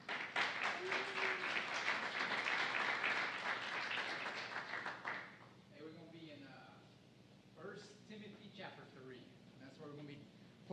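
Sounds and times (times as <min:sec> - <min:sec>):
audience applause: 0:00.0 - 0:05.4
speech: 0:09.8 - 0:10.7.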